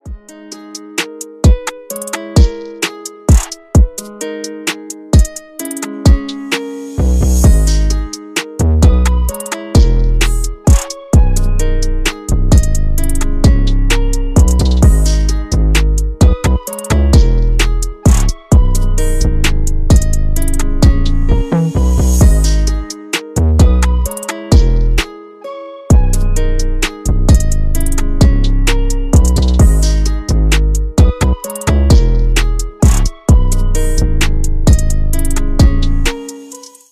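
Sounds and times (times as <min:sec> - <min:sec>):
instrumental guitar: 0:00.0 - 0:36.9.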